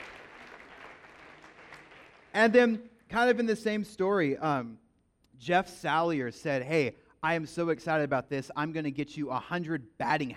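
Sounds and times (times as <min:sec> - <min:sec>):
audience clapping: 0:00.0 - 0:02.7
speech: 0:02.4 - 0:04.8, 0:05.4 - 0:10.3.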